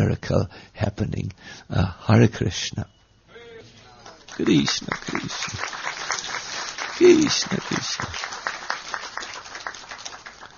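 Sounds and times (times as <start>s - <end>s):
speech: 0.1s - 3.0s, 4.4s - 6.1s, 7.0s - 8.4s
audience polite applause at a Hare Krishna talk: 3.9s - 10.5s.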